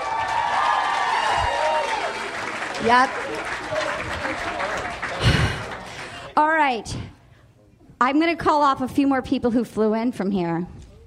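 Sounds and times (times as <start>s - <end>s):
audience applause: 0.0s - 6.4s
speech: 2.8s - 4.5s, 6.4s - 7.1s, 8.0s - 10.8s.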